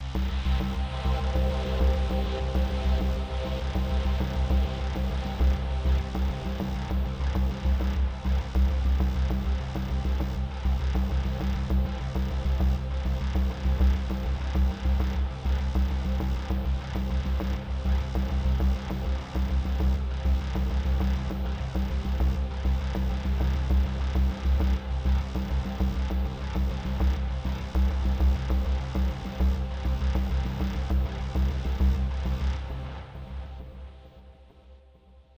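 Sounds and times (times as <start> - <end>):
music: 0.0 - 35.3.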